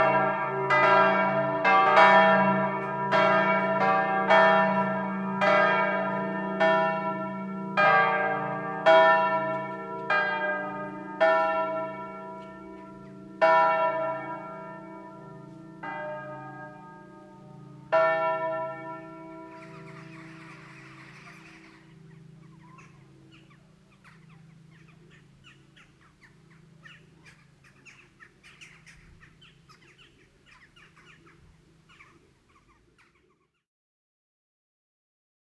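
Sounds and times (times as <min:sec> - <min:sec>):
church bells: 0:00.0 - 0:28.2.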